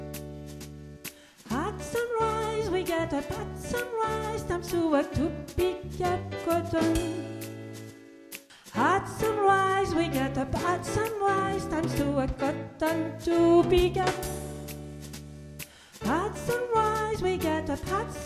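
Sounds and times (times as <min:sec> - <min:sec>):
soprano singing: 0:01.5 - 0:07.5, 0:08.7 - 0:14.5, 0:16.0 - 0:18.2.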